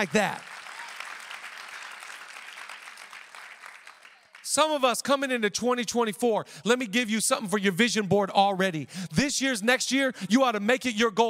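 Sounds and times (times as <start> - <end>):
speech: 0.0 - 0.5, 4.5 - 11.2
audience clapping: 0.0 - 5.2.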